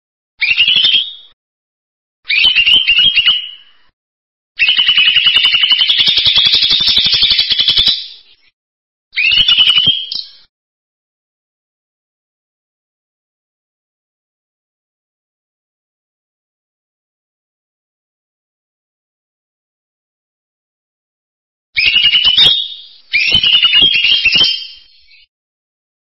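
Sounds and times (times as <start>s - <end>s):
bird song in buzzy trilled phrases: 2.3s - 3.7s, 4.6s - 8.5s, 9.2s - 10.5s, 21.8s - 25.3s.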